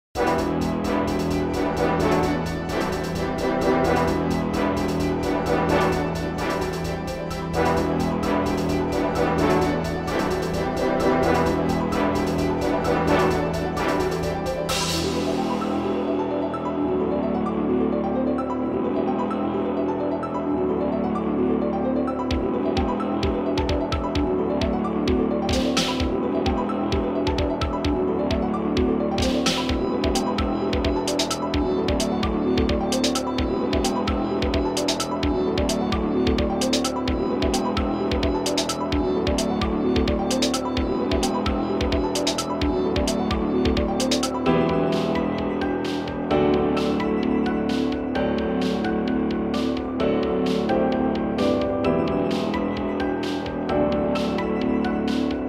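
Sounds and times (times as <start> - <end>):
royalty free music: 0.0 - 55.4.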